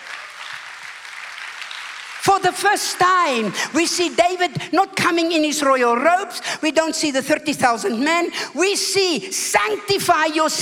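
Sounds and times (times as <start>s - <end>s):
audience applause: 0.0s - 3.7s
speech: 2.2s - 10.5s.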